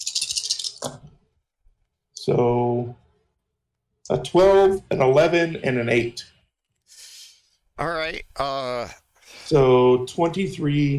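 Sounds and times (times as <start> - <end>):
rolling dice rattling: 0.0 - 1.0
speech: 2.3 - 3.0, 4.1 - 6.3, 7.8 - 10.9.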